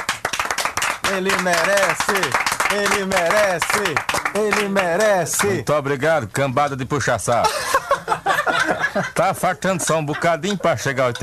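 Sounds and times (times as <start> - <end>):
audience applause: 0.0 - 5.5
speech: 1.1 - 8.3, 9.0 - 11.2
laughter: 7.4 - 11.2.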